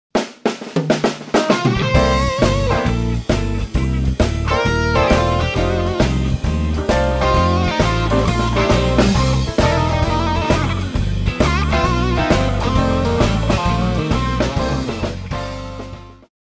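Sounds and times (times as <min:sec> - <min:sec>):
intro music: 0:01.1 - 0:16.3.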